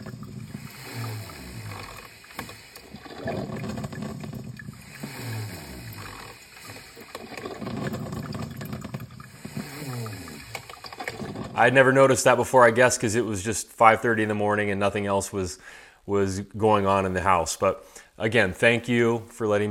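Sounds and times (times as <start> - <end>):
steady hiss: 0.0 - 3.3, 4.4 - 7.7, 9.3 - 11.2
coffee maker gurgling: 0.0 - 12.1
speech: 11.6 - 19.6.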